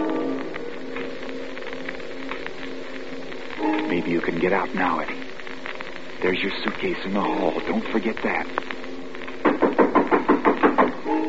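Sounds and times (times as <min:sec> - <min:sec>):
faint steady hum: 0:00.0 - 0:11.2
speech: 0:04.0 - 0:05.2, 0:06.2 - 0:08.7
firm knocking on a door: 0:09.5 - 0:11.0.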